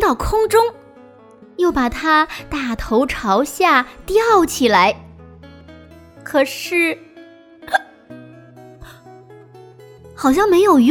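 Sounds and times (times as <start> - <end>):
speech: 0.1 - 0.8, 1.6 - 5.0, 6.3 - 7.0, 10.2 - 10.8
hiccup: 7.7 - 8.0.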